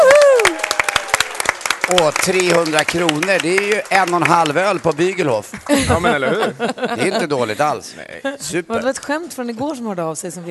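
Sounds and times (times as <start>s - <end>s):
warm applause from a group: 0.0s - 6.4s
speech: 1.9s - 10.4s
laughter: 5.6s - 8.7s.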